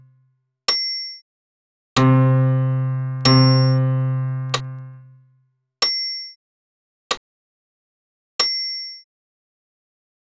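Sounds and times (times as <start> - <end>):
solo piano: 2.0 - 5.2.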